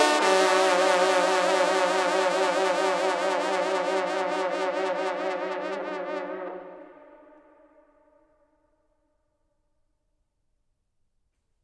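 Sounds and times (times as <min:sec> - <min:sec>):
hunting horns duet: 0:00.0 - 0:06.9.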